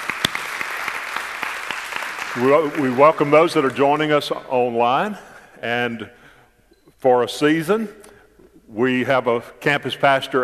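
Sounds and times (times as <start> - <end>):
continuous crowd applause: 0.0 - 3.7
audience rhythmic praise clapping: 0.0 - 4.4
speech: 2.3 - 6.2, 7.0 - 8.0, 8.7 - 10.4.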